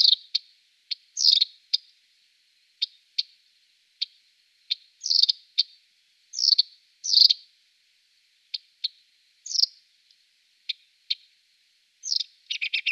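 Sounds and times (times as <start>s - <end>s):
Marsh warbler song: 0.0s - 1.9s, 4.0s - 7.5s, 8.5s - 9.8s, 12.0s - 12.9s.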